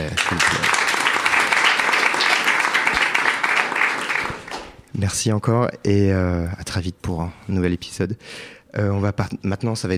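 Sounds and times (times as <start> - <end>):
audience applause: 0.0 - 4.8
speech: 5.0 - 9.9.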